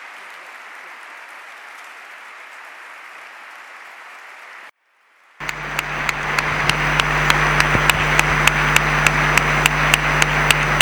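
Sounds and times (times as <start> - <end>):
crowd applause in a long ovation: 0.0 - 4.6, 5.4 - 10.7
rhythmic hand claps: 5.4 - 10.7.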